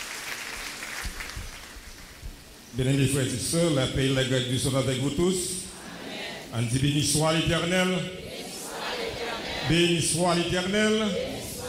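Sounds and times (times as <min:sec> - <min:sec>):
audience clapping: 0:00.0 - 0:02.1
speech: 0:02.8 - 0:05.6, 0:06.5 - 0:08.2, 0:09.7 - 0:11.3.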